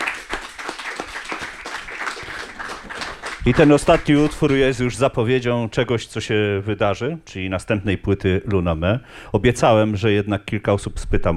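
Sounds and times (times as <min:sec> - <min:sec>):
audience applause: 0:00.0 - 0:04.8
speech: 0:03.4 - 0:11.3.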